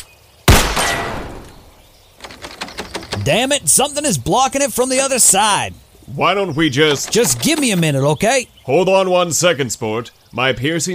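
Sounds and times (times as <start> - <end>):
gunshots shooting off door locks: 0.5 - 1.6
speech: 3.2 - 10.9.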